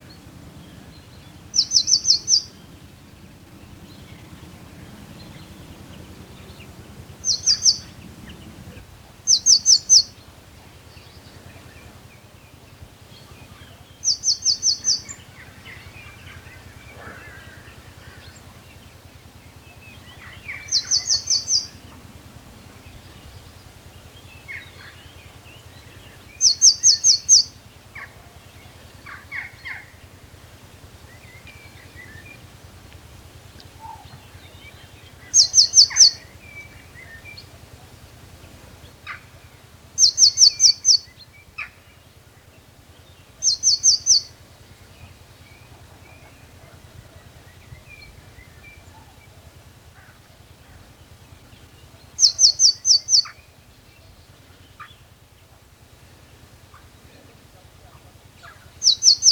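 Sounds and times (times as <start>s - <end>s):
Cyanistes caeruleus: 0.0s - 55.7s, 56.3s - 59.3s.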